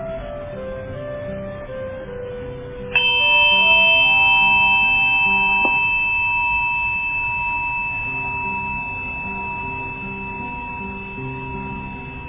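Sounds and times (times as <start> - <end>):
meditation bell ringing: 2.9 - 12.2.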